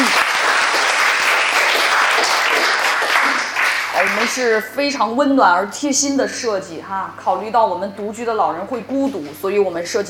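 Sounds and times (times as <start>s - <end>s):
applause: 0.0s - 4.5s
speech: 4.3s - 10.0s.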